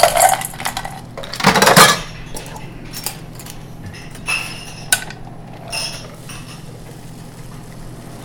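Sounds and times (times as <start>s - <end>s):
drink and ice poured into small copper mule cup: 0.0s - 2.6s.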